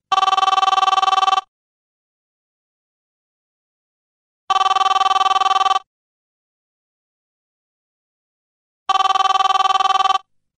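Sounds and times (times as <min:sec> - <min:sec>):
old phone: 0:00.0 - 0:01.5, 0:04.5 - 0:05.9, 0:08.9 - 0:10.4.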